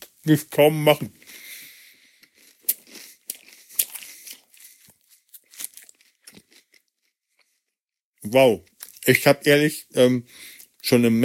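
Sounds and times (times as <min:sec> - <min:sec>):
speech: 0:00.2 - 0:01.4, 0:08.3 - 0:11.2
crunching Knäckebrot crispbread while eating: 0:02.2 - 0:07.6, 0:08.3 - 0:09.5.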